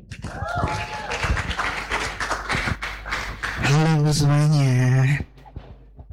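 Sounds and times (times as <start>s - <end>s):
audience applause: 0.1s - 3.8s
speech: 3.7s - 5.3s.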